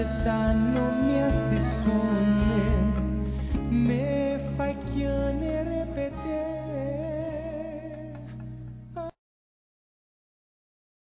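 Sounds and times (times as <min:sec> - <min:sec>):
man singing: 0:00.0 - 0:08.2.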